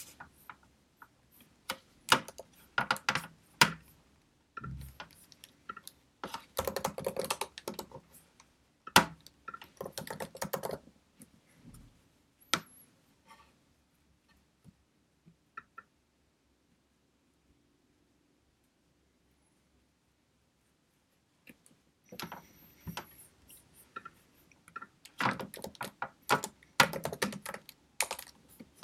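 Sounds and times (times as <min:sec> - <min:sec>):
computer keyboard and mouse clicks: 0:01.7 - 0:03.8, 0:04.6 - 0:10.8, 0:23.9 - 0:28.8.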